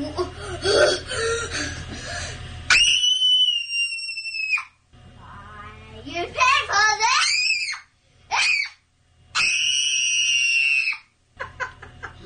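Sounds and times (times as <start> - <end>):
child sobbing and whining during a tantrum: 0.3 - 1.7
child's tantrum screaming: 2.7 - 4.8, 7.0 - 8.8, 9.4 - 11.1
laughter: 11.4 - 12.2.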